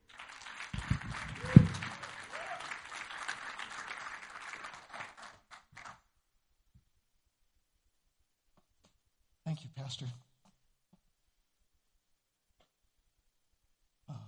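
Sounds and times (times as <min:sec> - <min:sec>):
audience applause welcoming a speaker at a church Bible-teaching gathering: 0:00.0 - 0:06.0
loud thump: 0:00.9 - 0:01.9
speech: 0:09.8 - 0:10.3.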